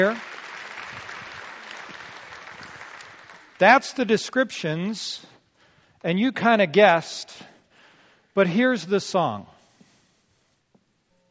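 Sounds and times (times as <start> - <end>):
speech: 0.0 - 0.3, 3.6 - 5.3, 6.0 - 7.5, 8.4 - 9.5
audience applause for volunteers: 0.0 - 3.8.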